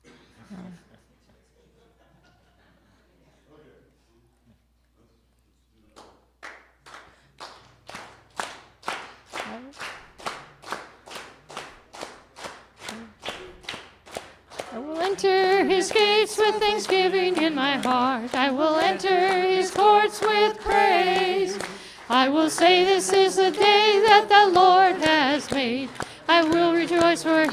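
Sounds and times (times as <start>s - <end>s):
laughter: 0.3s - 3.5s
people clapping hands: 5.9s - 27.5s
speech: 15.1s - 27.5s.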